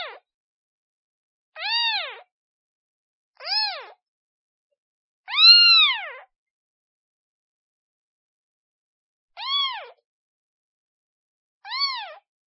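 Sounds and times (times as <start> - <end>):
kitten meowing calling for its mother: 1.6 - 2.2, 3.4 - 4.0, 5.3 - 6.3, 9.4 - 10.0, 11.7 - 12.3.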